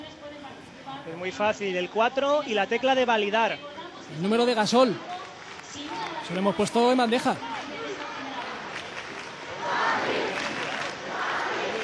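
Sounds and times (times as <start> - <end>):
speech: 1.0 - 7.5
large crowd roaring and cheering at the Puerta de Alcalá: 4.9 - 11.8.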